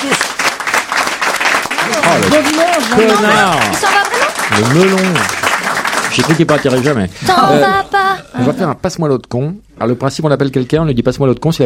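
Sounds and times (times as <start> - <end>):
audience applause: 0.0 - 7.6
speech: 2.0 - 5.4, 6.1 - 11.6.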